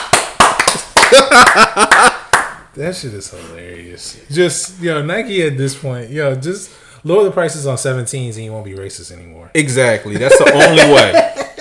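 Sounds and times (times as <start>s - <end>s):
hands clapping: 0.0s - 2.7s
laughter: 1.0s - 2.3s, 10.1s - 11.5s
speech: 1.1s - 2.2s, 2.8s - 11.3s.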